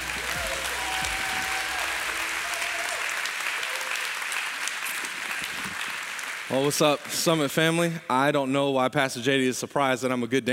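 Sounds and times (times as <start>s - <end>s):
church audience applauding to welcome a pastor: 0.0s - 7.7s
speech: 6.5s - 10.5s.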